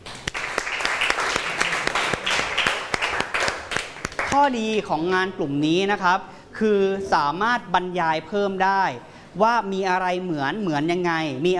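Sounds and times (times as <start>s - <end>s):
classroom applause: 0.0s - 4.4s
speech: 4.4s - 11.5s.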